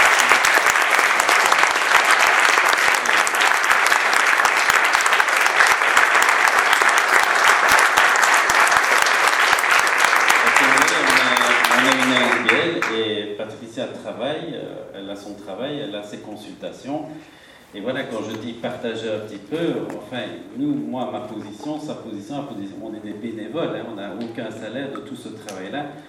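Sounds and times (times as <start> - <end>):
audience applause: 0.0 - 13.0
speech: 16.0 - 26.0.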